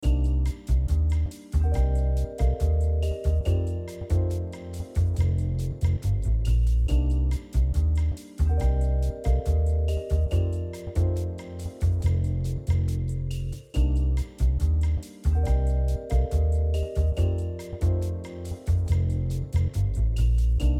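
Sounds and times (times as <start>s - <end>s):
elevator music: 0.0s - 20.7s.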